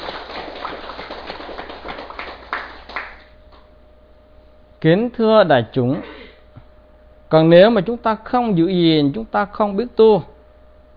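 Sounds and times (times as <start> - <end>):
crowd applause: 0.0 - 3.3
speech: 4.8 - 6.1, 7.3 - 10.3.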